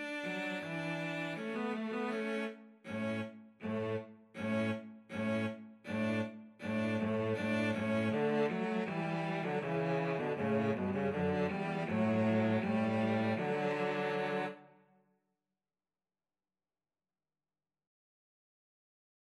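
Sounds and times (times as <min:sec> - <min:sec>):
two cellos in a string trio: 0:00.0 - 0:14.7
violin in a string trio: 0:00.0 - 0:14.8.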